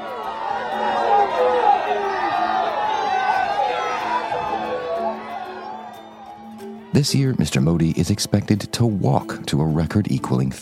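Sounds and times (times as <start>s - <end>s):
crowds of cheering supporters: 0.0s - 7.7s
speech: 7.0s - 10.6s.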